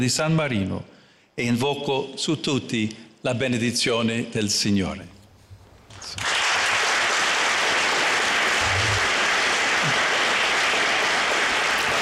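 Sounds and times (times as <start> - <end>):
speech: 0.0 - 5.2, 6.0 - 6.3
audience applause in council hall: 6.2 - 11.9.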